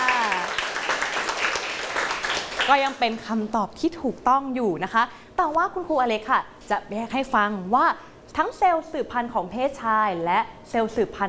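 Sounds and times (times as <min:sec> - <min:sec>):
classroom of people clapping: 0:00.0 - 0:03.1
speech: 0:02.7 - 0:11.2.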